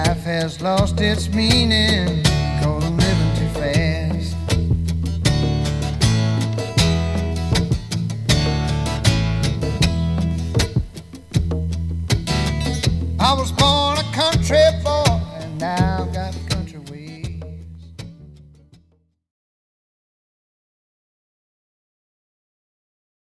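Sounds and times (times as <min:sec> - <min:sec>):
country music: 0:00.0 - 0:17.6.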